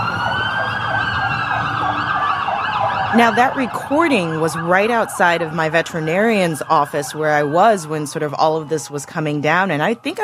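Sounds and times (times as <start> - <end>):
low city traffic rumble: 0.0 - 10.2
sirens of military and government vehicles rushing through city streets: 0.0 - 10.2
speech: 3.1 - 10.2.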